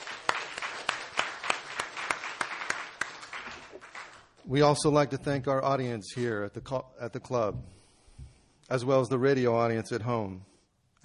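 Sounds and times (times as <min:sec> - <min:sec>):
crowd applauding: 0:00.0 - 0:04.4
speech: 0:04.5 - 0:07.8, 0:08.7 - 0:11.0.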